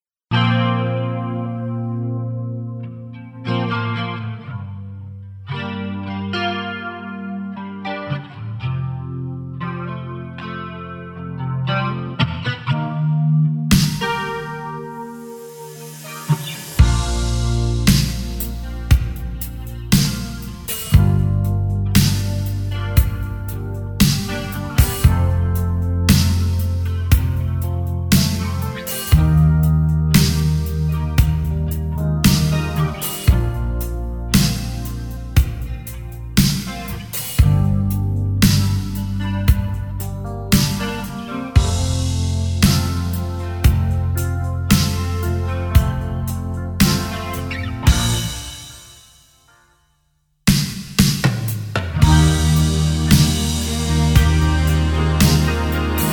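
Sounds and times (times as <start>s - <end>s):
instrumental music: 0.3s - 56.1s.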